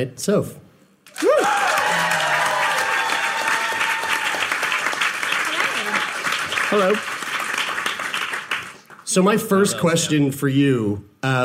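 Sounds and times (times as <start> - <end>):
speech: 0.0 - 0.6, 6.7 - 7.1, 9.1 - 11.4
audience applause: 1.1 - 9.0.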